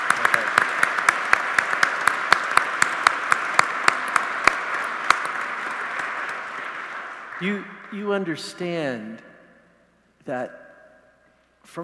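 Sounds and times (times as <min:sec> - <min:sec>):
round of applause: 0:00.0 - 0:08.7
speech: 0:07.4 - 0:09.3, 0:10.3 - 0:10.6, 0:11.6 - 0:11.8.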